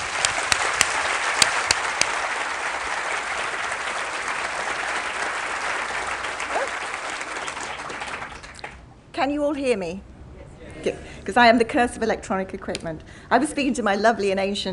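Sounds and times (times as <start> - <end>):
audience applause welcoming a speaker: 0.0 - 8.8
speech: 9.2 - 10.1, 10.8 - 14.7.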